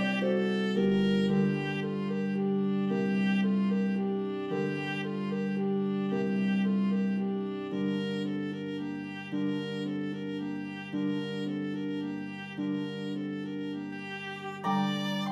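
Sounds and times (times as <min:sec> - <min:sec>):
pedal harp playing: 0:00.0 - 0:03.4, 0:14.4 - 0:15.3
viola playing: 0:00.0 - 0:15.3.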